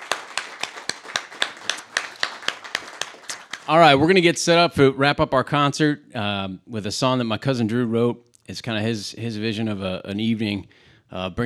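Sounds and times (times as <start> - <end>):
audience applause: 0.0 - 4.0
speech: 3.7 - 11.4.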